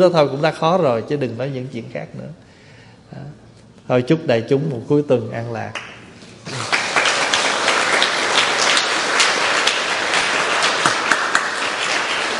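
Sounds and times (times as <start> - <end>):
speech: 0.0 - 2.4, 3.1 - 5.9
congregation clapping in a Buddhist temple after a dharma talk: 5.7 - 12.3.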